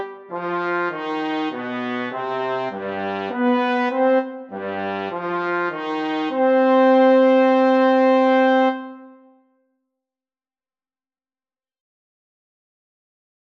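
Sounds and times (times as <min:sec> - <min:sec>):
trombone playing a sarabande: 0:00.0 - 0:09.2.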